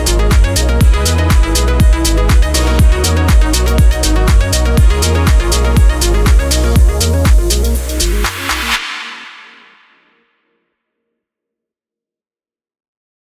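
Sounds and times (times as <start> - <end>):
fashion house music: 0.0 - 10.1.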